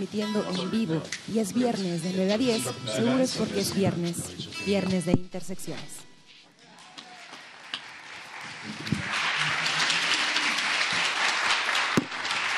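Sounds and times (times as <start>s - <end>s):
speech: 0.0s - 6.1s
audience applause: 6.7s - 12.5s.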